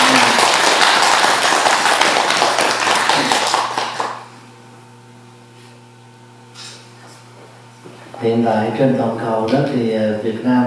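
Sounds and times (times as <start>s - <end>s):
audience applause at a Vietnamese community event honoring a Buddhist pagoda: 0.0s - 4.3s
speech: 8.2s - 10.6s.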